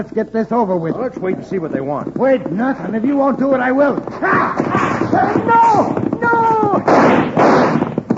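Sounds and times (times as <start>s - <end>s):
speech: 0.0s - 7.2s
gunshot cutting a rope: 6.8s - 8.0s.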